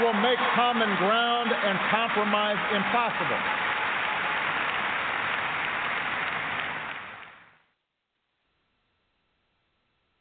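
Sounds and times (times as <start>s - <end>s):
audience applause: 0.0s - 7.6s
speech: 0.2s - 3.7s.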